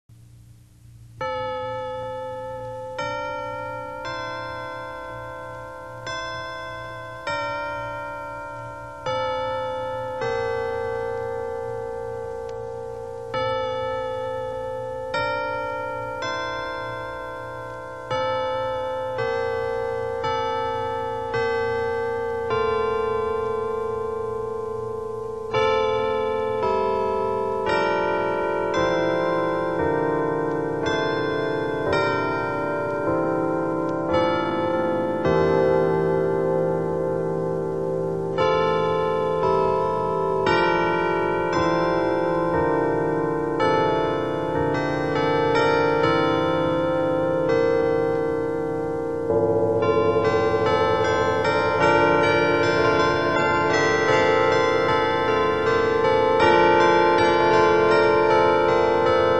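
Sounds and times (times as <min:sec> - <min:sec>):
carillon chimes: 0:01.2 - 0:59.3.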